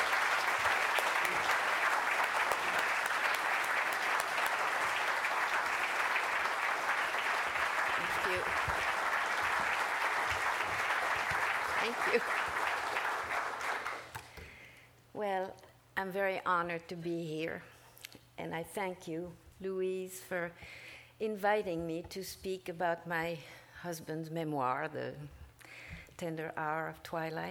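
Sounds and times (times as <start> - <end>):
audience applauding to welcome guests at the Los Angeles Public Library: 0.0 - 14.2
speech: 16.1 - 17.7, 18.4 - 25.4, 26.2 - 27.5.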